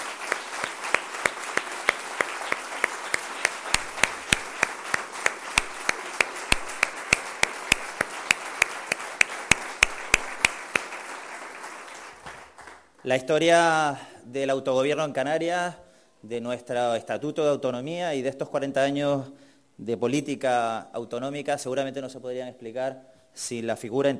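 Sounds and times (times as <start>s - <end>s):
audience applause in parliament: 0.0s - 12.9s
speech: 13.0s - 24.1s.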